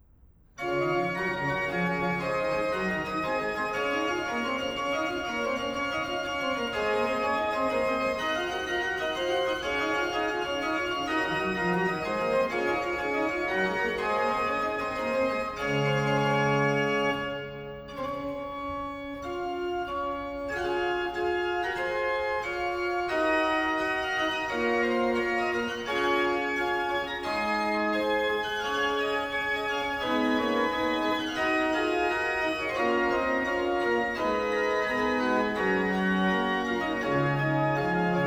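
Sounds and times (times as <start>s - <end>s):
organ: 0.6s - 38.2s.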